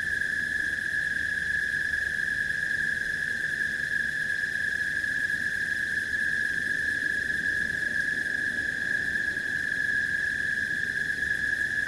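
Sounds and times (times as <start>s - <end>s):
crickets trilling at night: 0.0s - 11.8s.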